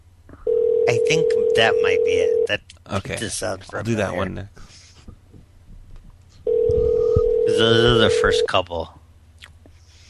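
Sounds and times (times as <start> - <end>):
steady mid-pitched phone tone: 0.5 - 2.5, 6.5 - 8.5
speech: 1.1 - 4.8, 7.6 - 9.0
low rumble: 6.5 - 7.4.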